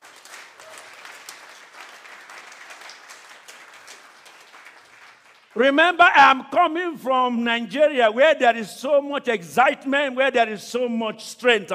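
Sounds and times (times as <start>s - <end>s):
audience clapping: 0.0s - 6.0s
speech: 5.6s - 11.7s.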